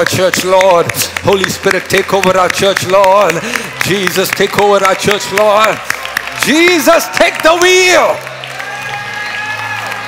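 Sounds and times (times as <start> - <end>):
speech: 0.0 - 8.3
audience clapping hands: 0.0 - 10.0.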